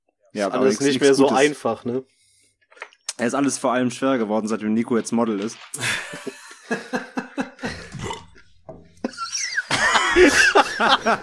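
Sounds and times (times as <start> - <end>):
speech: 0.4 - 2.2, 3.2 - 7.2, 10.8 - 11.2
laugh blended with a burp: 5.8 - 11.2.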